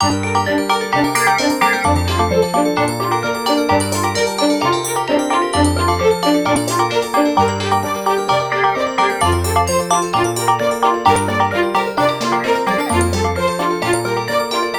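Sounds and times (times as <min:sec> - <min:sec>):
ringtone: 0:00.0 - 0:14.7.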